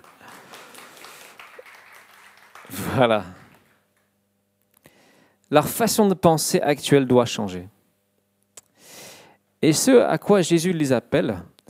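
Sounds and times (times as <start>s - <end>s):
crowd applause: 0.0s - 3.8s
speech: 2.7s - 3.4s, 5.5s - 7.8s, 9.6s - 11.5s.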